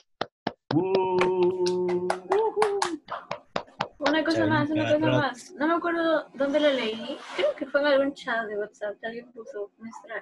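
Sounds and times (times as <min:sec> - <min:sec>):
applause, hands clapping: 0:00.0 - 0:04.7
speech: 0:04.2 - 0:10.2.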